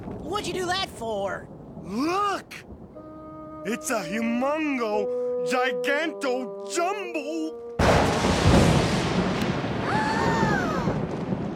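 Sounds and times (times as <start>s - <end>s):
thunder: 0.0s - 4.1s, 7.8s - 11.5s
speech: 0.3s - 2.8s, 3.6s - 8.2s.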